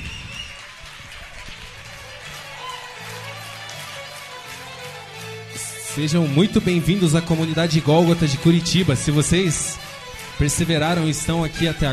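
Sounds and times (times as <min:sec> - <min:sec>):
audience applauding to welcome visitors: 0:00.0 - 0:11.9
low sustained musical notes: 0:05.5 - 0:11.9
speech: 0:06.0 - 0:09.7, 0:10.4 - 0:11.9.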